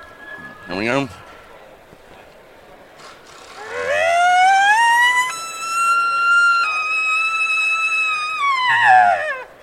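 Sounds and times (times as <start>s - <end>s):
speech: 0.7s - 1.3s
imitated elk bugle made with a call, growl and whistle: 3.5s - 9.5s.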